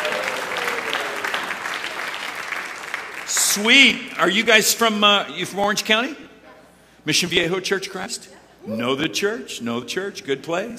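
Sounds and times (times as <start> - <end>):
audience applause: 0.0 - 4.2
speech: 3.6 - 6.3, 7.0 - 10.7.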